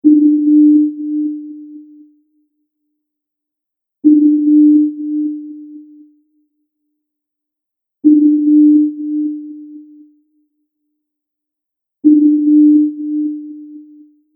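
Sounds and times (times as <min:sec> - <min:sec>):
submarine sonar ping: 0:00.0 - 0:02.1, 0:04.1 - 0:06.1, 0:08.0 - 0:10.1, 0:12.1 - 0:14.2.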